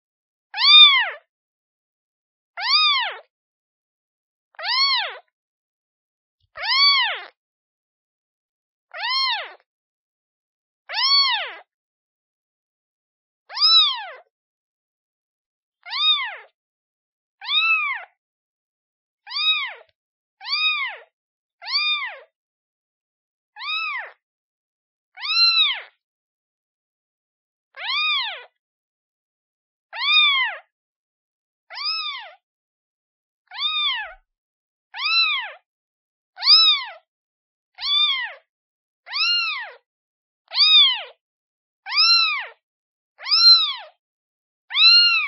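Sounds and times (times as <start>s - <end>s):
kitten meowing: 0.6s - 1.2s, 2.6s - 3.2s, 4.6s - 5.2s, 6.6s - 7.3s, 9.0s - 9.6s, 10.9s - 11.7s, 13.5s - 14.3s, 15.9s - 16.5s, 17.4s - 18.1s, 19.3s - 19.8s, 20.4s - 21.0s, 21.6s - 22.2s, 23.6s - 24.2s, 25.2s - 25.9s, 27.8s - 28.4s, 29.9s - 30.7s, 31.7s - 32.4s, 33.5s - 34.2s, 35.0s - 35.6s, 36.4s - 37.0s, 37.8s - 38.4s, 39.1s - 39.8s, 40.5s - 41.2s, 41.9s - 42.6s, 43.2s - 44.0s, 44.7s - 45.2s.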